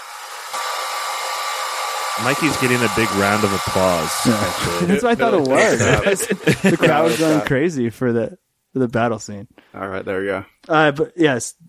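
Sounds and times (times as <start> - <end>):
water heater running in a basement: 0.0 - 5.2
laughter: 2.2 - 7.5
speech: 2.2 - 11.6.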